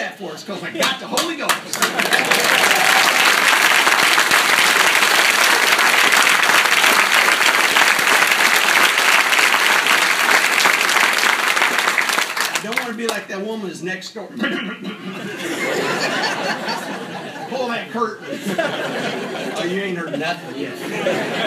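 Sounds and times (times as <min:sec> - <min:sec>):
speech: 0:00.2 - 0:03.0, 0:12.6 - 0:21.4
audience clapping: 0:00.8 - 0:13.3
laughter: 0:01.6 - 0:06.2, 0:14.3 - 0:21.4.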